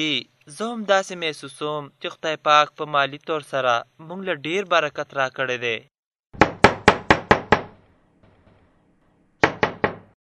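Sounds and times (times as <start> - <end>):
speech: 0.0 - 5.9
knocking on a wooden door: 6.4 - 7.8, 9.4 - 10.2.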